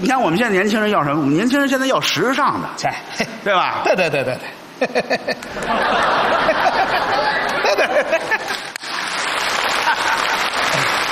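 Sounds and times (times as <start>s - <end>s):
speech: 0.0s - 7.2s
laughter: 3.8s - 11.1s
audience applause: 8.4s - 11.1s.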